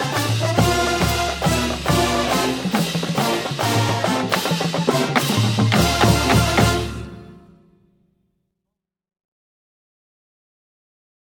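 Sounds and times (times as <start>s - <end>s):
song: 0.0s - 7.8s.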